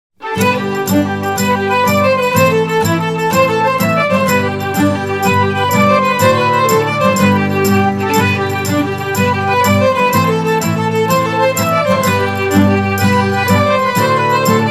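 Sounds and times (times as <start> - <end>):
traditional Irish folk tune: 0.2 - 14.7.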